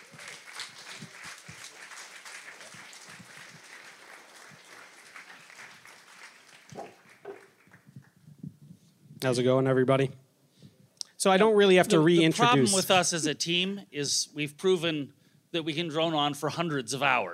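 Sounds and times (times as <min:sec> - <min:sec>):
audience applause: 0:00.0 - 0:08.2
speech: 0:09.2 - 0:10.2, 0:11.2 - 0:17.3.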